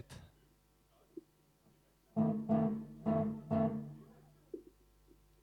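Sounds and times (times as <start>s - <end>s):
soundcheck: 2.2s - 4.3s.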